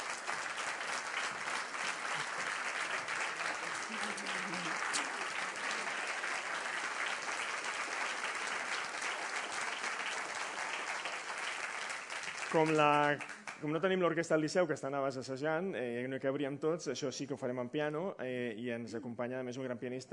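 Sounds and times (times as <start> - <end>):
audience applause: 0.0 - 13.6
speech: 12.5 - 20.1.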